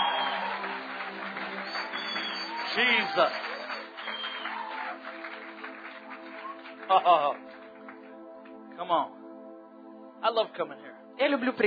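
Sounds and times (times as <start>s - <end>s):
crowd applauding: 0.0s - 8.6s
speech: 2.8s - 3.5s, 6.9s - 7.4s, 8.8s - 9.2s, 10.2s - 11.6s.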